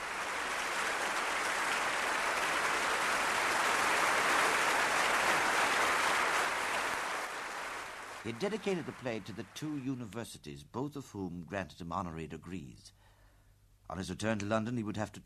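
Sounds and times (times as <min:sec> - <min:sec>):
audience applauding: 0:00.0 - 0:09.9
speech: 0:08.2 - 0:13.0, 0:13.9 - 0:15.2.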